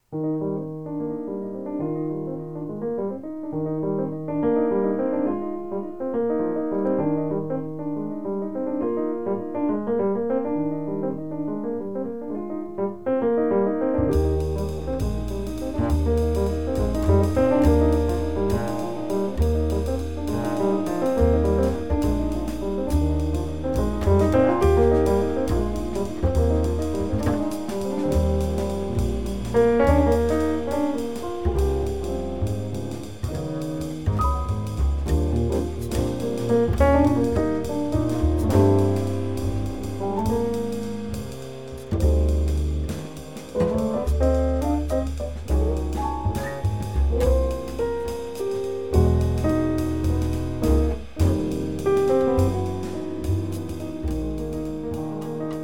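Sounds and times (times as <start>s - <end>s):
waltz played by a trio: 0.0s - 55.6s.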